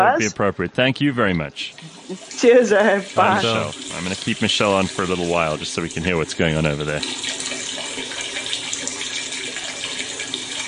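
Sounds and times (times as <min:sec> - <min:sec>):
speech: 0:00.0 - 0:07.5
long stream of urination: 0:01.6 - 0:10.6.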